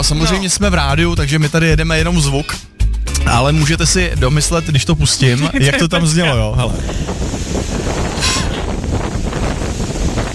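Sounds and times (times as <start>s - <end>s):
speech: 0.0s - 2.7s, 3.3s - 7.3s
wind buffeting against the microphone: 5.8s - 10.3s
howling wind storm on rainy overcast Crete: 6.6s - 10.3s.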